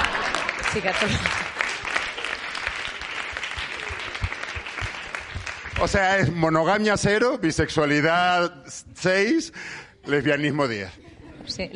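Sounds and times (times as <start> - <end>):
one person clapping hands: 0.0 - 6.1
speech: 0.7 - 1.5, 5.8 - 11.7.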